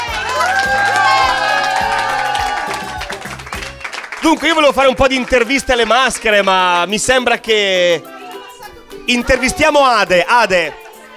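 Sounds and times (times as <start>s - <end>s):
loud whoops and shouting voices, some of them children's: 0.0s - 4.0s
audience applauding for a DJ: 0.0s - 6.8s
speech: 4.2s - 8.2s, 9.1s - 10.8s.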